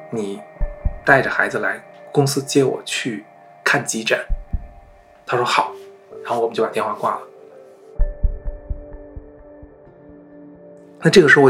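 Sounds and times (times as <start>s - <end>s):
speech: 0.1s - 4.4s, 5.3s - 7.3s, 11.0s - 11.4s
fast heartbeat: 0.6s - 1.2s, 4.3s - 5.0s, 8.0s - 9.8s.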